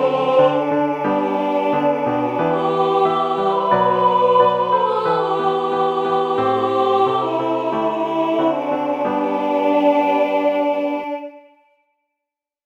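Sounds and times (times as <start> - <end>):
contralto singing: 0.0 - 11.5.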